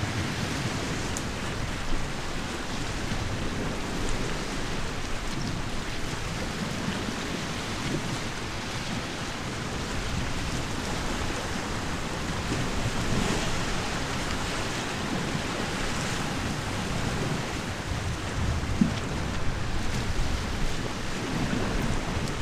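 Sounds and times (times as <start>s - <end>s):
light ocean surf waves: 0.0s - 22.4s.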